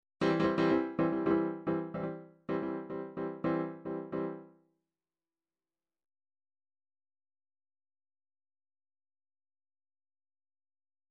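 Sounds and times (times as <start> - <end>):
MIDI mambo chord lines: 0.2 - 4.4.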